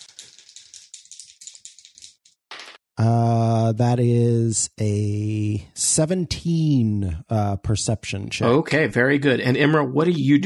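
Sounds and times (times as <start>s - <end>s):
dice rattling and clattering: 0.0s - 2.8s
speech: 3.0s - 10.4s.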